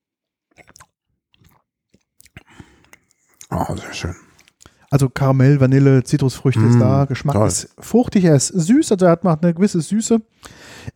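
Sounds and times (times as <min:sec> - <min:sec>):
sipping and slurping while tasting a spirit: 0:00.5 - 0:04.9
speech: 0:03.5 - 0:04.3, 0:04.9 - 0:10.9.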